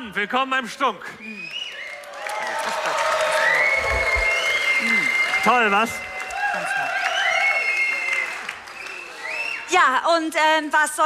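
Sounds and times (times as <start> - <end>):
speech: 0.1 - 1.6, 4.8 - 7.0, 9.7 - 11.0
studio audience applauding: 1.4 - 9.8.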